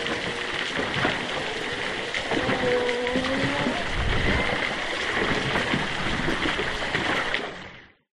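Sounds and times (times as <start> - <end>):
distant humpback whales underwater off eastern Australia: 0.0 - 6.3
choppy water movement: 0.0 - 8.0.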